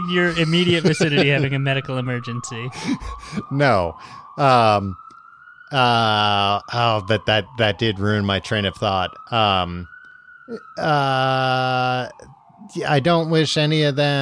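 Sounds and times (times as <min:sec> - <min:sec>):
speech: 0:00.0 - 0:05.0, 0:05.7 - 0:09.9, 0:10.5 - 0:14.2
ambulance siren: 0:00.0 - 0:14.2
laughter: 0:00.2 - 0:01.8.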